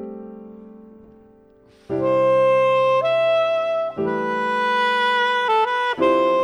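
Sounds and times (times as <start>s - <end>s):
ballad: 1.9s - 6.4s.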